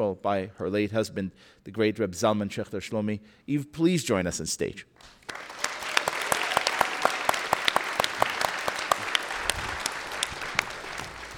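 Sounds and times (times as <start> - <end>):
speech: 0.0 - 5.6
audience applause: 5.2 - 11.3.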